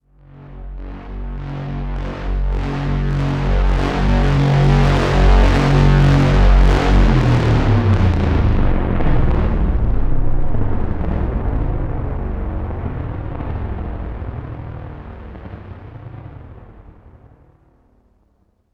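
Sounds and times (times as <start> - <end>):
tense music hit: 2.3 - 14.8.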